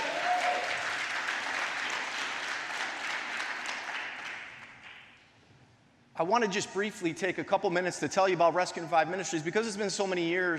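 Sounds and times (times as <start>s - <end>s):
crowd clapping: 0.0s - 5.2s
speech: 6.2s - 10.5s.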